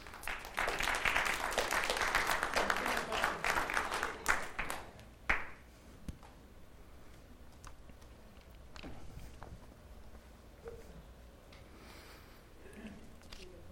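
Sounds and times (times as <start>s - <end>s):
audience applause welcoming a young man soon to be married: 0.0s - 5.5s.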